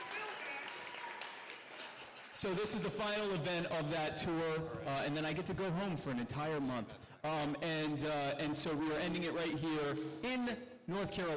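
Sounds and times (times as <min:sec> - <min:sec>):
faint voices or cheers from audience: 0:00.0 - 0:01.6
audience applause: 0:00.0 - 0:02.4
speech: 0:02.4 - 0:11.3.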